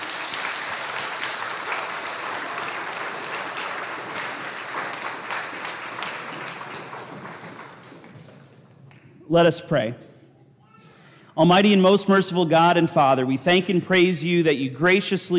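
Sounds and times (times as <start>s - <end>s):
audience applause: 0.0s - 8.7s
speech: 9.3s - 10.1s, 11.4s - 15.3s.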